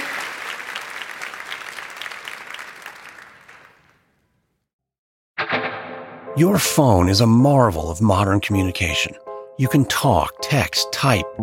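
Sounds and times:
audience applause: 0:00.0 - 0:04.0
speech: 0:06.4 - 0:11.4.

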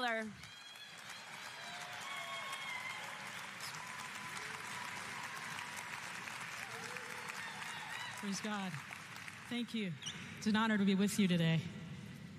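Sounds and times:
speech: 0:00.0 - 0:00.5, 0:08.2 - 0:08.9, 0:09.5 - 0:11.8
crowd applause welcoming a guest speaker at a church gathering: 0:00.0 - 0:09.7.

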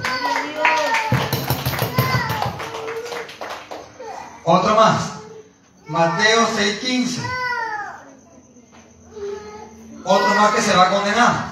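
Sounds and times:
audience clapping: 0:00.0 - 0:04.0
speech: 0:04.5 - 0:05.2, 0:05.9 - 0:07.4, 0:10.0 - 0:11.5.

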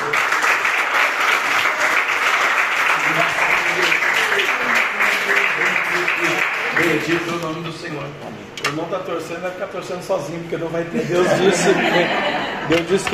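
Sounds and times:
audience applause: 0:00.0 - 0:07.5
speech: 0:07.1 - 0:13.1
laughter: 0:10.9 - 0:13.1.

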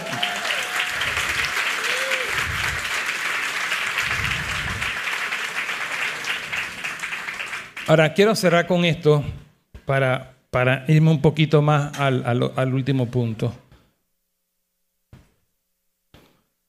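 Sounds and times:
audience applause: 0:00.0 - 0:07.9
speech: 0:07.9 - 0:13.6.

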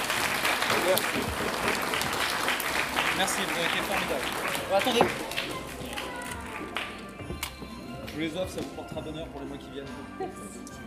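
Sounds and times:
crowd applauding: 0:00.0 - 0:07.2
speech: 0:00.9 - 0:01.9, 0:03.2 - 0:05.6, 0:08.2 - 0:10.8.

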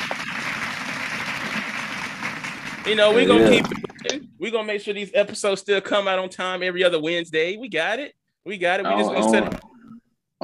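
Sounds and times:
audience clapping: 0:00.0 - 0:04.2
speech: 0:02.8 - 0:09.6.

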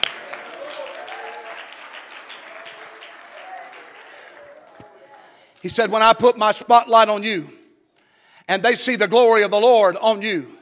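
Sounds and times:
audience clapping: 0:00.0 - 0:05.7
speech: 0:05.6 - 0:07.6, 0:08.5 - 0:10.6.

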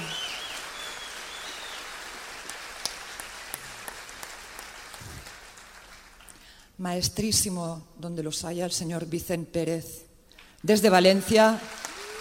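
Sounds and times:
audience applause for a trumpeter: 0:00.0 - 0:06.4, 0:11.4 - 0:12.1
speech: 0:06.8 - 0:10.0, 0:10.6 - 0:11.8.

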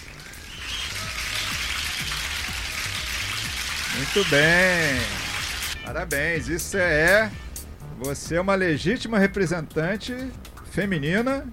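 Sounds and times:
audience applause: 0:00.0 - 0:05.8
speech: 0:04.0 - 0:05.2, 0:05.8 - 0:07.4, 0:08.0 - 0:11.5.

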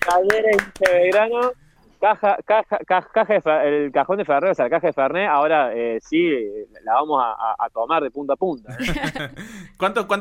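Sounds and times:
hand clapping: 0:00.0 - 0:01.7
speech: 0:00.1 - 0:10.1
laughter: 0:08.7 - 0:10.1.

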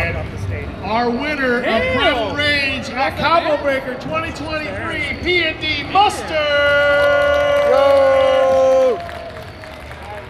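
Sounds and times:
speech: 0:00.3 - 0:08.2
tournament crowd applauding: 0:06.4 - 0:10.2.

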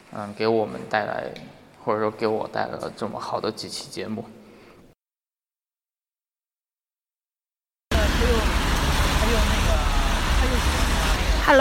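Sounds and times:
speech: 0:00.1 - 0:04.4
street traffic at a rainy intersection in Shanghai: 0:07.9 - 0:11.5.

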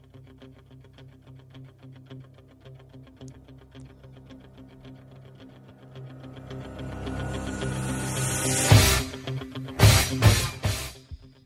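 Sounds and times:
instrumental rock intro with guitar drone and band hits: 0:02.8 - 0:11.4.

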